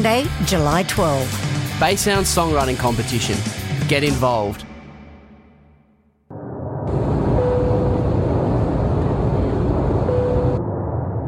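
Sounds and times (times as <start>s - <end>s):
speech: 0.0s - 4.7s
airliner cabin engine roar during descent into Byron Ballina Gateway Airport: 6.3s - 11.2s.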